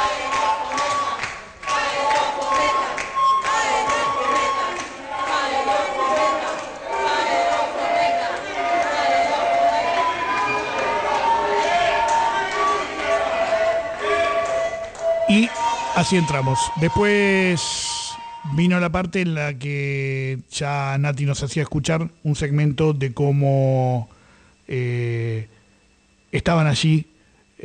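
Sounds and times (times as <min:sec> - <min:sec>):
crowd shouting a protest chant while entering: 0:00.0 - 0:17.1
speech: 0:16.0 - 0:24.1, 0:24.7 - 0:25.6, 0:26.3 - 0:27.6.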